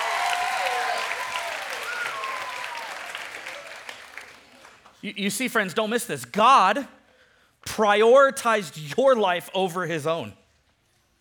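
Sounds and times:
round of applause: 0:00.0 - 0:05.0
speech: 0:05.0 - 0:07.0, 0:07.8 - 0:10.4.

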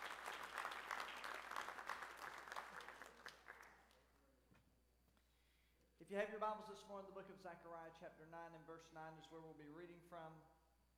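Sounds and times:
crowd clapping: 0:00.0 - 0:04.0
speech: 0:06.1 - 0:10.6.

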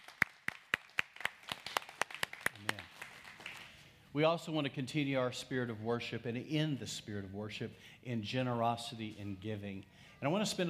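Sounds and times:
audience clapping: 0:00.0 - 0:03.8
speech: 0:04.2 - 0:10.6.

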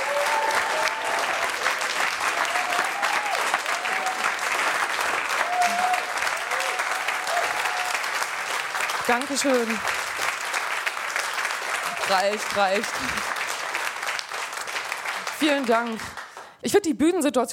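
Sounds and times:
applause: 0:00.0 - 0:16.9
speech: 0:09.1 - 0:10.0, 0:12.1 - 0:13.3, 0:15.4 - 0:17.5.

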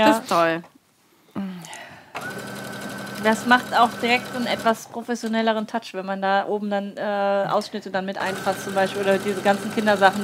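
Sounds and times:
speech: 0:00.0 - 0:00.7, 0:03.2 - 0:10.2
sewing machine stitching fabric: 0:02.2 - 0:04.9, 0:08.2 - 0:10.2.

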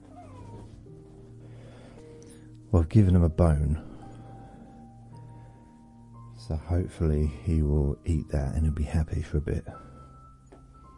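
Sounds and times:
dog whimpering: 0:00.0 - 0:00.9
speech: 0:02.7 - 0:03.9, 0:06.5 - 0:09.9.

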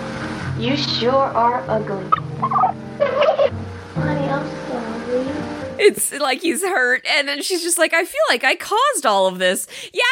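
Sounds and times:
speech: 0:00.6 - 0:10.1
man imitating a turkey gobble: 0:02.4 - 0:03.5.

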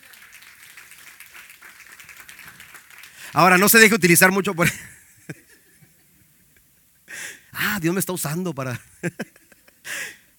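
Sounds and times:
audience applause: 0:00.0 - 0:04.0
speech: 0:03.4 - 0:05.0, 0:07.8 - 0:09.4
laughter: 0:08.8 - 0:09.9.

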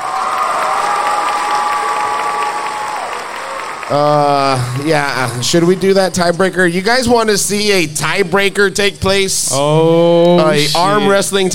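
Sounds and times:
audience applause: 0:00.0 - 0:06.4
audience cheering: 0:00.0 - 0:06.6, 0:10.4 - 0:11.3
speech: 0:03.9 - 0:11.5.

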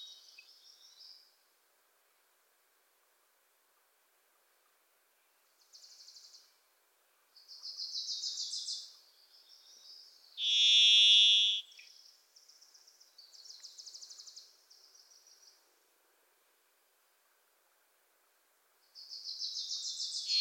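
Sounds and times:
Wilson's Warbler trilling: 0:10.4 - 0:11.6
varied thrush buzzy whistle: 0:10.4 - 0:11.6.

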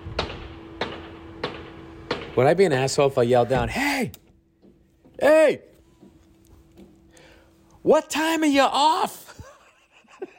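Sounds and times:
hammering with two hammers: 0:00.2 - 0:02.6
speech: 0:02.4 - 0:04.2, 0:05.2 - 0:05.7, 0:07.8 - 0:09.2
laughter: 0:09.3 - 0:10.3.

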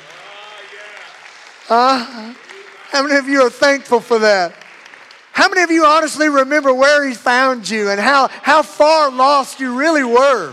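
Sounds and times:
audience clapping hands: 0:00.0 - 0:07.1, 0:09.6 - 0:10.5
speech: 0:01.7 - 0:04.6, 0:05.4 - 0:10.5.

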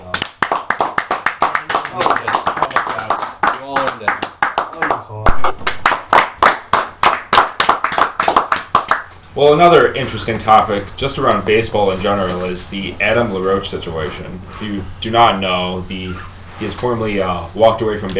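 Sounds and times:
people clapping: 0:00.0 - 0:09.2
speech: 0:03.6 - 0:04.2, 0:09.4 - 0:18.1.

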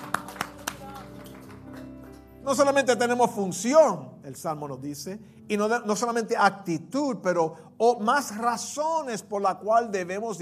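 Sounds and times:
one person clapping hands alone: 0:00.0 - 0:02.3
speech: 0:02.5 - 0:10.4.

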